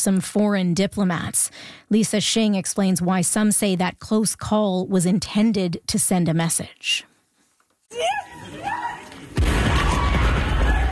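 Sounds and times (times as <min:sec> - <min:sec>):
speech: 0:00.0 - 0:07.1, 0:07.9 - 0:08.7
drone strike explosion at a train station in Ukraine: 0:09.4 - 0:10.9.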